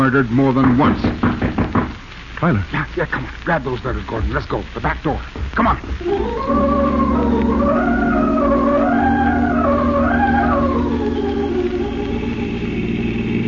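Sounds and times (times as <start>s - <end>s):
speech: 0.0s - 1.3s, 2.4s - 6.8s
car engine driving fast: 6.1s - 13.4s.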